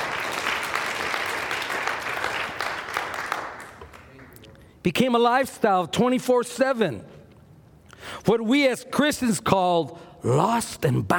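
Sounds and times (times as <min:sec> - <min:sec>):
audience clapping: 0:00.0 - 0:04.6
speech: 0:04.8 - 0:07.2, 0:08.2 - 0:11.1.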